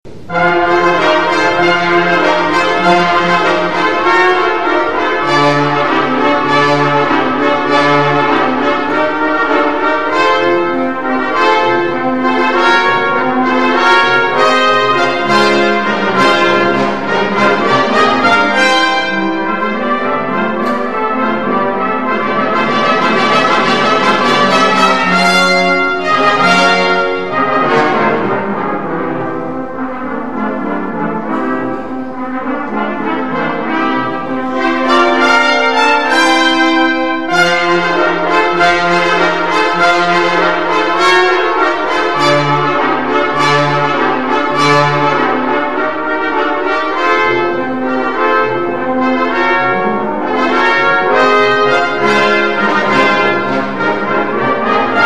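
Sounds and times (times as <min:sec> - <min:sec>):
fanfare: 0:00.1 - 0:55.0.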